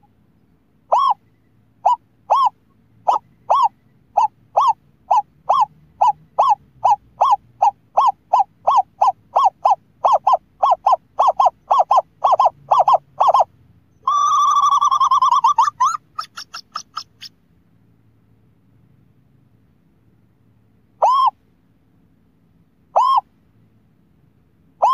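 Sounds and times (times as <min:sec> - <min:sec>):
scops owl hooting: 0:00.9 - 0:17.4, 0:21.0 - 0:21.4, 0:22.9 - 0:23.3, 0:24.8 - 0:24.9.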